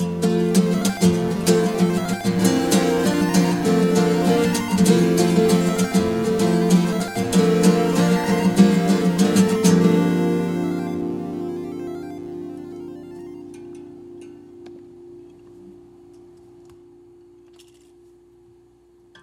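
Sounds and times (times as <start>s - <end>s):
backing track: 0.1s - 14.6s.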